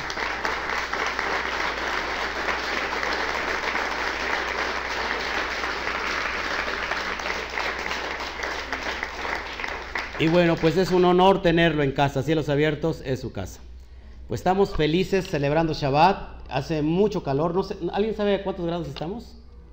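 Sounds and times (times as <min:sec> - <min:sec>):
audience applause: 0:00.0 - 0:11.0
speech: 0:10.2 - 0:13.7, 0:14.3 - 0:19.4.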